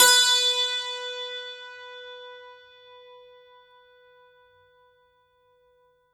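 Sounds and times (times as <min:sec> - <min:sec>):
santoor: 0:00.0 - 0:04.6.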